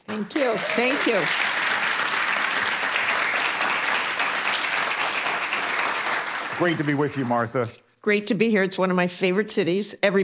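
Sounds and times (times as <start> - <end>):
audience applause welcoming a guest speaker onstage: 0.1 - 7.7
speech: 0.2 - 1.7, 6.6 - 10.2.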